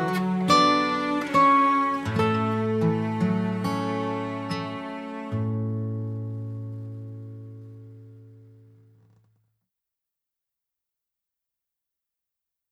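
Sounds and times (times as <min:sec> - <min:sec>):
instrumental music: 0:00.0 - 0:09.2.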